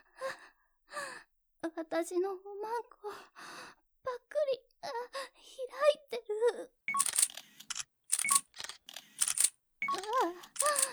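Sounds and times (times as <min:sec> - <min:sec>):
speech: 0:01.7 - 0:03.6, 0:04.8 - 0:06.8
camera shutter clicks as photos are taken: 0:06.9 - 0:10.9.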